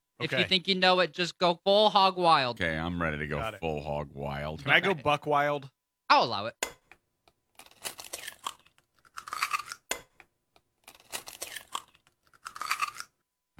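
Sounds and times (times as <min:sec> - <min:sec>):
speech: 0:00.2 - 0:06.8
egg cracking open: 0:06.6 - 0:13.2.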